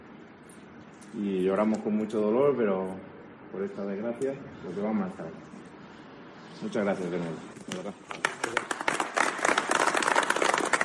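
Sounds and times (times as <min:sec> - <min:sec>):
speech: 0:01.1 - 0:05.5, 0:06.6 - 0:08.6
crowd applause: 0:08.2 - 0:10.8.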